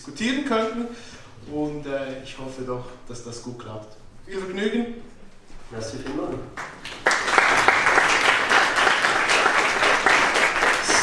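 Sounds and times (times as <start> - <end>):
speech: 0.0 - 5.1, 5.7 - 6.8
audience applause: 6.6 - 11.0.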